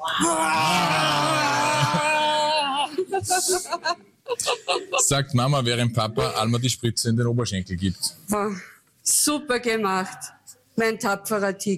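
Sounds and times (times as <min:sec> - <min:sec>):
people roaring like a bear: 0:00.0 - 0:03.0
speech: 0:00.2 - 0:01.1, 0:03.2 - 0:11.7
laughter: 0:00.5 - 0:05.3.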